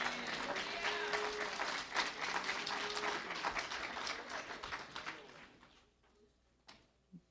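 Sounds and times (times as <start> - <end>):
audience applauding and clapping hands: 0.0 - 5.7.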